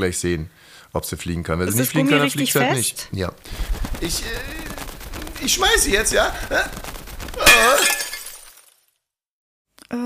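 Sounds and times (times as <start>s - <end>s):
speech: 0.0s - 4.7s, 5.4s - 7.8s
window pane shattering: 7.4s - 8.9s.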